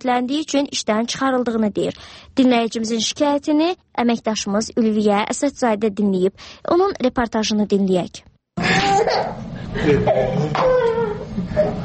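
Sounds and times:
speech: 0.0 - 11.8
small child crying at home: 8.6 - 9.4, 10.5 - 11.4.

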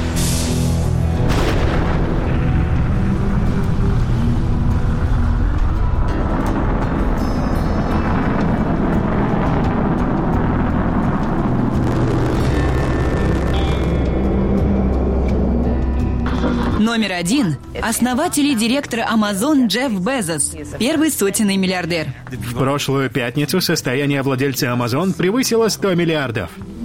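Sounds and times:
rocket main engines roaring at launch ignition: 0.0 - 18.3
speech: 17.0 - 26.7.

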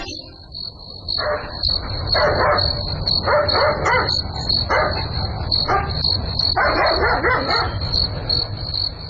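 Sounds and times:
crickets chirring: 0.1 - 9.0
low night ambience rumble: 0.2 - 9.0
dog barking at night: 1.2 - 7.9.

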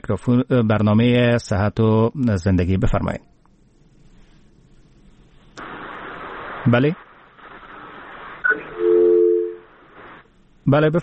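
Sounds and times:
speech: 0.1 - 3.3, 6.6 - 7.0, 10.6 - 11.0
crackling burst on a phone line: 5.5 - 8.8, 9.6 - 10.4
electronic tone: 8.4 - 9.6.

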